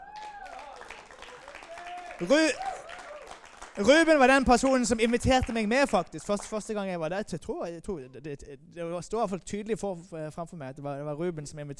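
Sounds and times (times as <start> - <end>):
audience applause: 0.0 - 6.7
speech: 2.2 - 2.7, 3.8 - 11.7.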